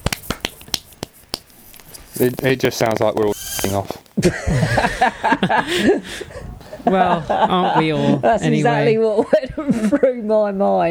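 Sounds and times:
small group clapping hands: 0.0 - 3.9
speech: 2.2 - 10.8.

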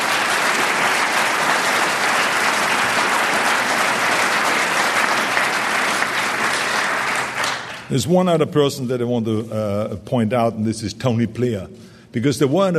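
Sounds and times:
crowd clapping: 0.0 - 8.0
speech: 7.9 - 12.7.

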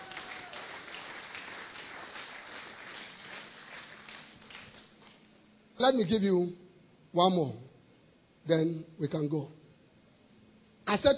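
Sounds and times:
audience clapping hands: 0.0 - 5.3
speech: 5.8 - 7.6, 8.5 - 9.6, 10.9 - 11.1.

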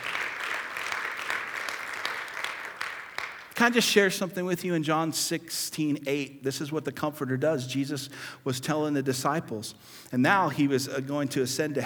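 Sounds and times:
crowd applauding: 0.0 - 3.7
speech: 3.6 - 11.8.

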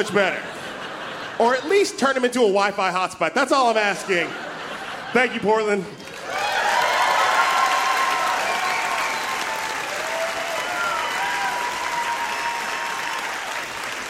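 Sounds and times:
speech: 0.0 - 0.6, 1.4 - 4.4, 5.1 - 6.0
laughter: 0.0 - 2.4, 3.6 - 6.2
audience applauding: 6.0 - 14.0.

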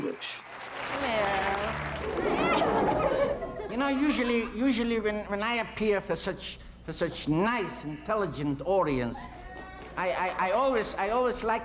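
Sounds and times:
speech: 0.0 - 0.5, 3.8 - 9.4, 10.0 - 11.6
audience applause welcoming a Yiddish theater performer to the stage: 0.0 - 3.7
laughter: 0.8 - 5.0.

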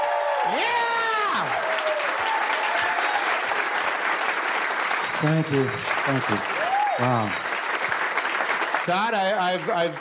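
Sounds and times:
whoops: 0.0 - 3.4, 6.6 - 7.2
audience clapping: 0.0 - 9.9
speech: 0.4 - 1.6, 5.2 - 7.5, 8.8 - 9.9.

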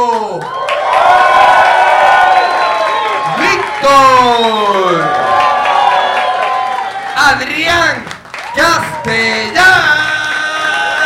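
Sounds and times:
studio audience applauding at a live comedy show: 0.0 - 11.0
speech: 7.3 - 9.9.

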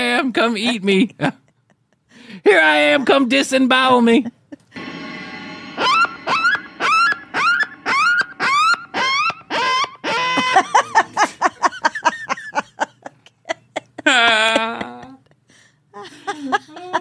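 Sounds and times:
speech: 0.2 - 1.4, 2.2 - 4.8
coyote call: 6.9 - 10.6
laughter: 10.1 - 15.4, 16.0 - 16.9.

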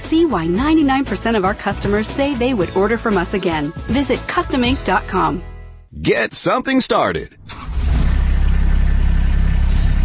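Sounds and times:
speech: 0.1 - 7.6
Kubota RTV utility vehicle engine running: 7.5 - 10.0.

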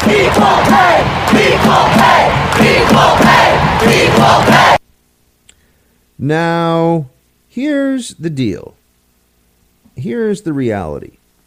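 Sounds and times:
stadium crowd chanting: 0.0 - 4.8
speech: 6.2 - 8.8, 10.0 - 11.2.

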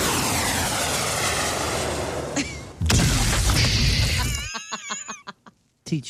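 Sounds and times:
jet engine rumble: 0.0 - 2.8
bunker buster bomb explosion: 0.0 - 4.4
laughter: 4.1 - 5.5.

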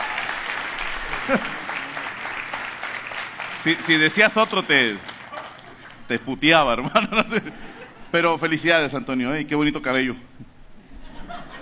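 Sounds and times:
audience applause: 0.0 - 6.6
laughter: 0.9 - 2.6, 5.2 - 8.5, 10.8 - 11.6
speech: 1.3 - 1.6, 3.6 - 5.1, 6.1 - 10.3.

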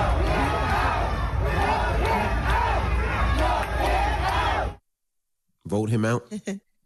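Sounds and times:
crowd booing: 0.0 - 4.8
speech: 5.8 - 6.7.

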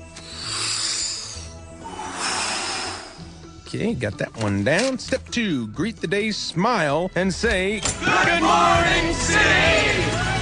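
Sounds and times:
airy breathing: 0.0 - 3.7
speech: 3.7 - 10.3.

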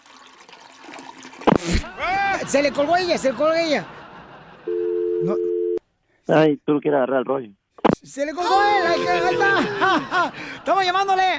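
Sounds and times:
toilet flushing: 0.0 - 1.7
speech: 1.6 - 4.0, 6.3 - 11.3
laughter: 1.7 - 5.4, 8.6 - 11.3.

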